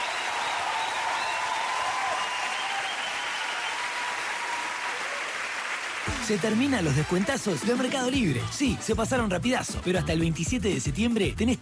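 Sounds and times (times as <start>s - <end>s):
crowd applause: 0.0s - 8.6s
speech: 6.2s - 11.6s.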